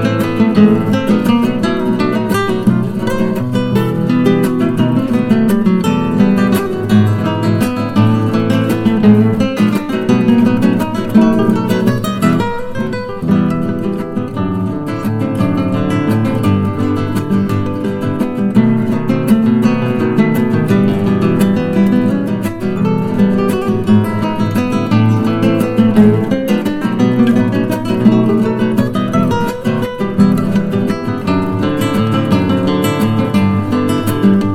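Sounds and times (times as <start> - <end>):
classical guitar waltz: 0.0 - 34.5.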